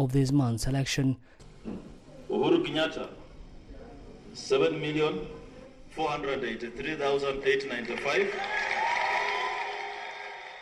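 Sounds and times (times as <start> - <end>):
speech: 0.0 - 3.2, 4.4 - 5.4, 6.0 - 8.6
crowd cheering from a television in a restaurant in Kisumu: 7.4 - 10.6.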